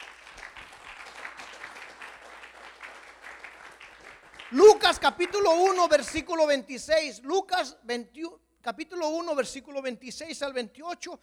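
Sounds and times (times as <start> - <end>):
audience applause: 0.0 - 4.9
speech: 4.5 - 11.2.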